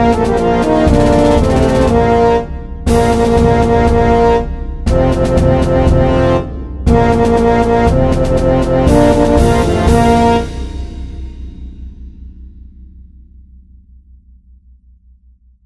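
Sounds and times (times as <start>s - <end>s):
fanfare: 0.0s - 11.2s
march music: 0.0s - 11.6s.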